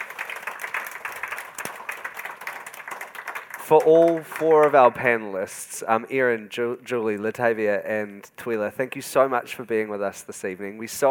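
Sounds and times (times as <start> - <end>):
audience applause for four panellists at an evening event: 0.0 - 5.0
speech: 3.7 - 11.0.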